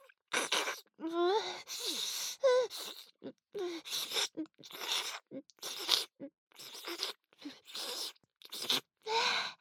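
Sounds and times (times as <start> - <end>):
oral sex sounds: 0.1 - 9.3
ear licking: 3.9 - 8.8.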